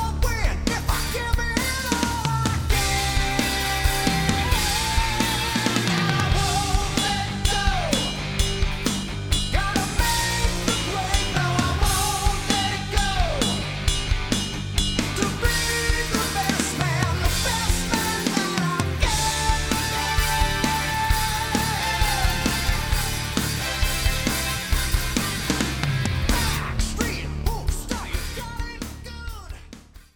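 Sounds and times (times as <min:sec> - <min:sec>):
prog music: 0:00.0 - 0:30.1.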